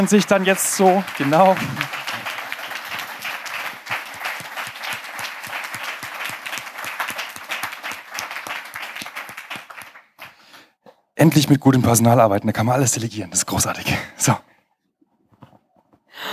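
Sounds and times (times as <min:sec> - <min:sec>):
speech: 0:00.0 - 0:02.0, 0:11.2 - 0:14.5
audience applause for hosts: 0:00.0 - 0:10.5.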